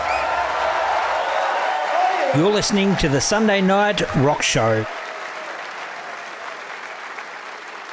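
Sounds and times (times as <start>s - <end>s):
audience applause welcoming a guest on stage: 0.0s - 7.9s
speech: 2.3s - 5.0s.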